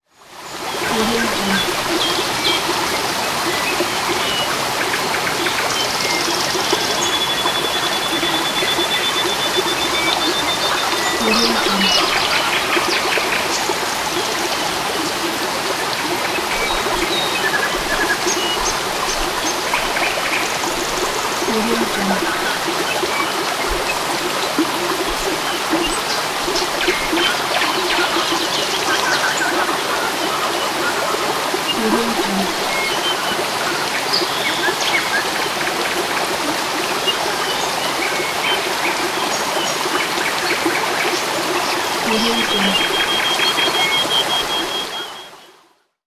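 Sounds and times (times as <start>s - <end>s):
stream flowing: 0.1s - 45.5s
birds by a stream: 0.6s - 15.3s, 16.2s - 35.6s, 41.7s - 45.4s.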